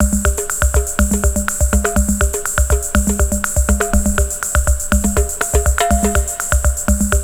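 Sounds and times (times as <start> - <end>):
music loop: 0.0 - 7.2.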